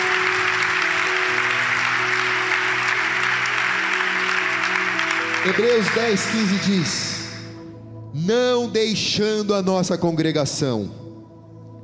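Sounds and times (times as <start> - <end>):
audience applause: 0.0 - 7.6
speech: 5.4 - 7.1, 8.2 - 11.0.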